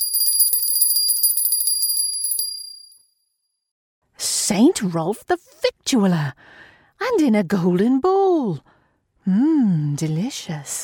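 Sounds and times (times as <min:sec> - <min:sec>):
small silver hand bell ringing: 0:00.0 - 0:03.1
speech: 0:04.5 - 0:10.8.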